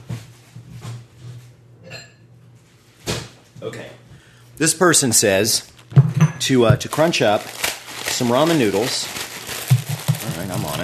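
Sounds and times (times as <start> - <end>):
dishes clinking getting a bowl: 1.8 - 2.2
speech: 3.6 - 7.6, 8.2 - 9.2.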